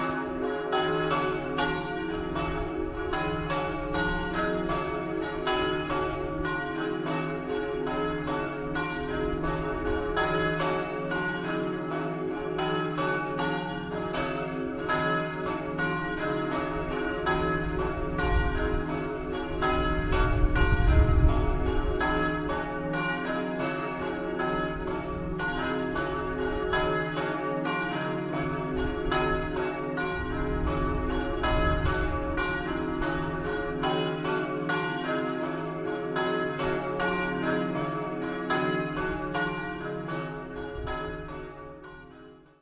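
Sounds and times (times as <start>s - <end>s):
church bells in Zugliano: 0.0s - 42.6s.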